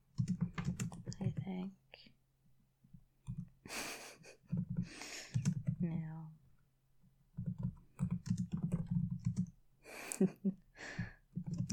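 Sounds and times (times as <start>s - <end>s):
rapid typing on a computer keyboard: 0.1s - 1.5s, 3.2s - 3.6s, 4.4s - 5.8s, 7.3s - 9.6s, 11.2s - 11.7s
speech: 1.5s - 1.8s, 10.2s - 11.0s.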